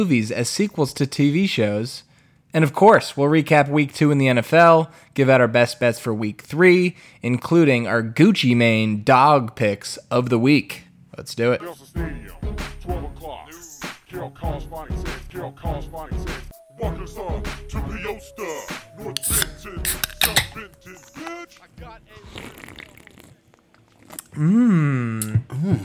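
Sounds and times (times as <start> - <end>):
speech: 0.0 - 23.1, 24.4 - 25.8
cold beer cans being cracked open: 19.2 - 21.4.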